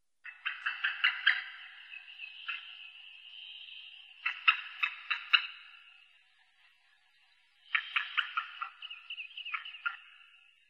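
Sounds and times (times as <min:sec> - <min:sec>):
white-tailed eagle calling: 0:00.3 - 0:05.8, 0:07.7 - 0:10.3.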